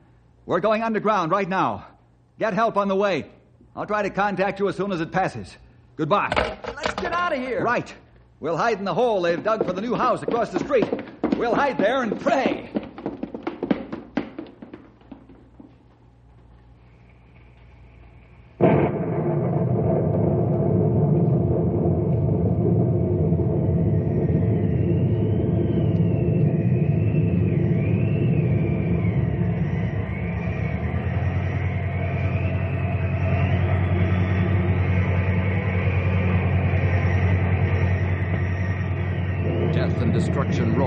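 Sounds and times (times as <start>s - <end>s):
speech: 0.5s - 12.8s
low rumbling and tapping: 8.9s - 40.8s
thin whistling whine: 16.5s - 19.6s, 21.2s - 40.8s
tornado funnel roaring: 18.6s - 40.8s.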